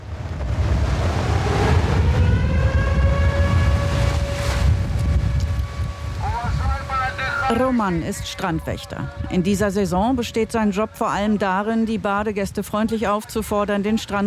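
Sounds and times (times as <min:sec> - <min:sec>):
sea surf roaring: 0:00.0 - 0:09.4
wailing air-raid siren: 0:01.1 - 0:10.3
speech: 0:07.5 - 0:14.2.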